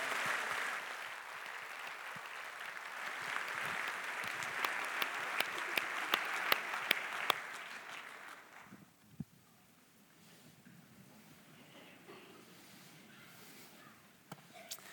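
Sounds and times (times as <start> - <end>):
audience applauding: 0.0 - 8.8.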